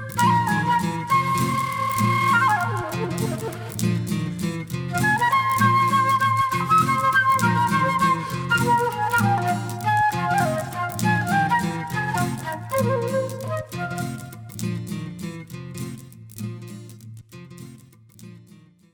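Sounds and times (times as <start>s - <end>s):
flute: 0.0s - 14.9s.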